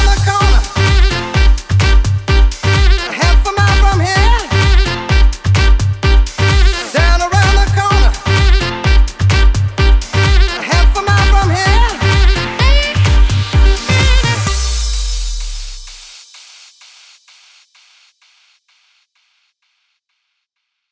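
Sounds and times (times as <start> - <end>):
saxophone: 0.0 - 15.8.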